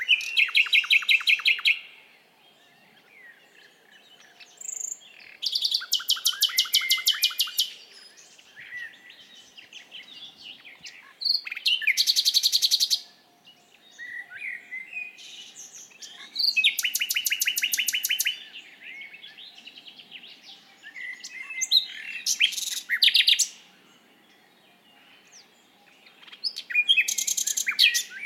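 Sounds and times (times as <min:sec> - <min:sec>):
Common nightingale song: 0:00.0 - 0:28.2.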